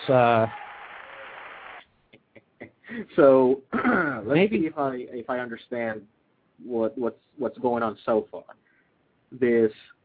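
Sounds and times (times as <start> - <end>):
speech: 0.0 - 0.6, 2.9 - 8.6, 9.3 - 10.0
audience applause on a talk show: 0.0 - 1.8.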